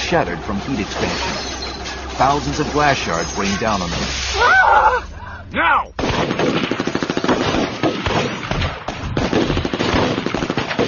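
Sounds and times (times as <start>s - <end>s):
speech: 0.1s - 1.6s, 2.2s - 6.8s
rapid automatic gunfire barrage: 6.0s - 10.8s.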